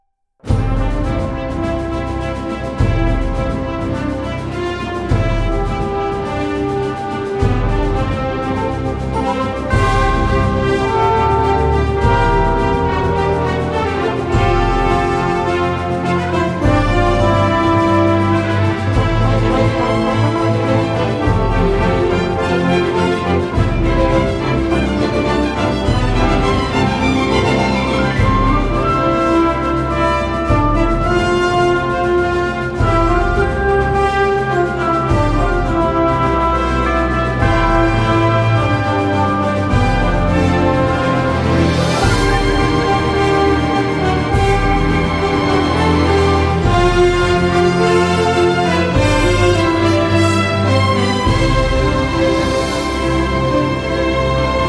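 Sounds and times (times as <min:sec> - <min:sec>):
full orchestra playing a national anthem instrumental: 0:00.4 - 0:54.6.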